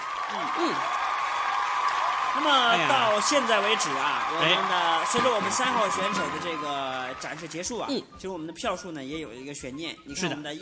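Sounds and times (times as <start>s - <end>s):
audience applause: 0.0s - 7.8s
speech: 0.3s - 1.0s, 2.4s - 10.6s.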